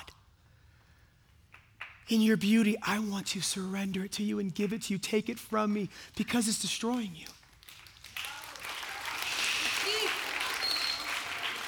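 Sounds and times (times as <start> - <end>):
speech: 2.1 - 7.4
audience applause: 7.6 - 11.6
faint whistle: 10.5 - 11.3.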